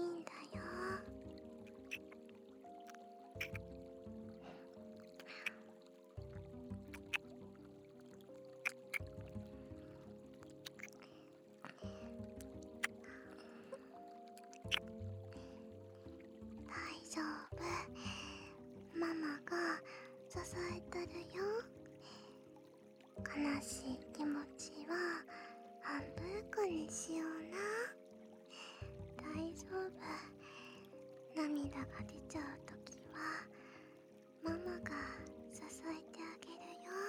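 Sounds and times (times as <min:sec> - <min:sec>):
background music: 0:00.0 - 0:37.0
gentle kissing while lying beside someone: 0:01.7 - 0:03.7, 0:05.0 - 0:05.8, 0:06.9 - 0:07.3, 0:08.6 - 0:09.2, 0:10.5 - 0:13.4, 0:14.2 - 0:15.0.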